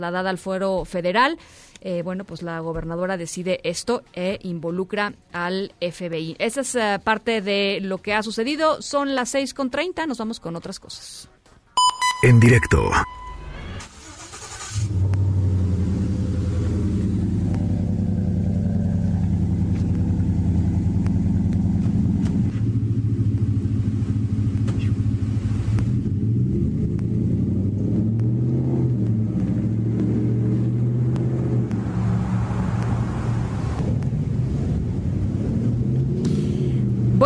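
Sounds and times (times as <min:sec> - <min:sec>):
speech: 0:00.0 - 0:11.4, 0:12.2 - 0:13.2
pickup truck engine starting and revving: 0:13.9 - 0:37.2.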